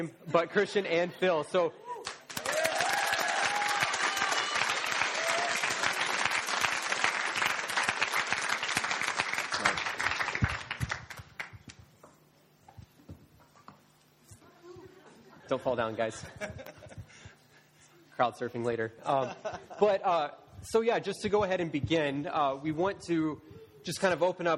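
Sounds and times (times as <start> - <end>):
speech: 0.0 - 2.2, 15.5 - 16.8, 18.2 - 24.5
audience applause welcoming two guests at a faith discussion event: 2.0 - 11.6
laughter: 14.6 - 17.4, 19.0 - 20.0.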